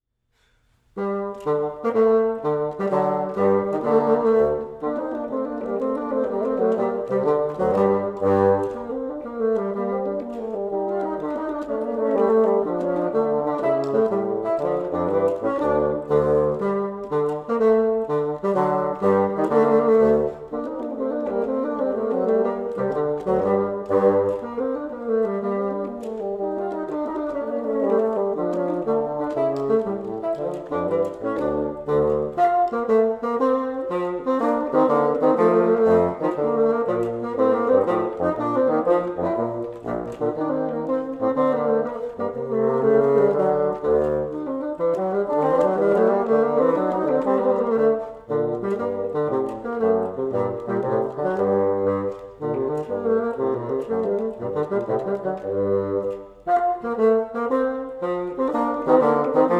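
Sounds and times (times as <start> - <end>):
gavotte music: 0.4 - 59.5.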